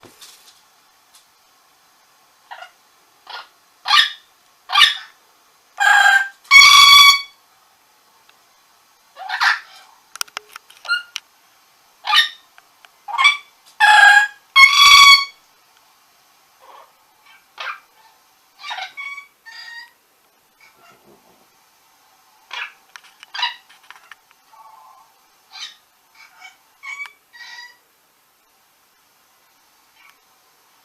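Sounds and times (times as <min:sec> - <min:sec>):
steady hiss: 0:00.0 - 0:06.6, 0:07.2 - 0:14.6, 0:15.2 - 0:18.6, 0:19.2 - 0:30.8
orange-winged amazon squawking: 0:02.5 - 0:05.2, 0:05.8 - 0:07.4, 0:09.2 - 0:09.9, 0:12.0 - 0:12.4, 0:13.1 - 0:15.4, 0:16.6 - 0:20.0, 0:22.5 - 0:23.7, 0:24.5 - 0:27.8.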